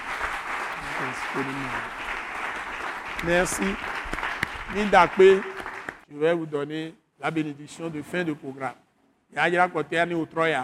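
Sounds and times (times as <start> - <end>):
congregation applauding in church during worship: 0.0 - 6.0
speech: 1.2 - 2.0, 3.2 - 4.0, 4.7 - 5.5, 6.1 - 10.6.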